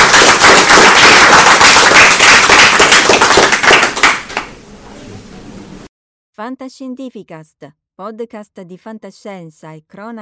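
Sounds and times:
audience applause: 0:00.0 - 0:04.6
speech: 0:06.4 - 0:10.2.

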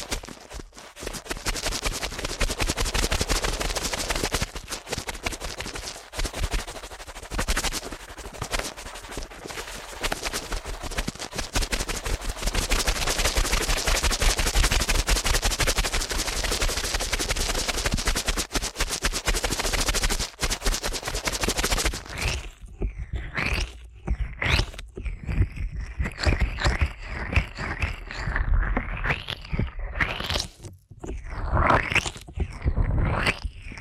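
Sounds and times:
ear cleaning rubbing strokes and swishes: 0:00.0 - 0:22.6
ear cleaning crackling and scratching: 0:00.0 - 0:33.7.

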